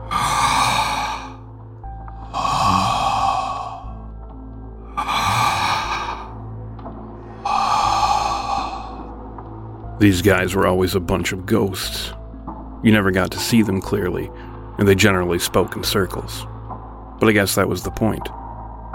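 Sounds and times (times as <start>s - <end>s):
hoarse menacing breathing: 0.0s - 9.3s
speech: 10.0s - 12.2s, 12.8s - 16.5s, 17.2s - 18.4s.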